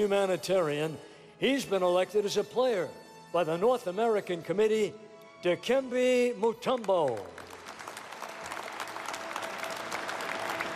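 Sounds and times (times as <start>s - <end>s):
speech: 0.0s - 7.4s
audience applause at hall of fame induction in a big hall: 6.8s - 10.7s.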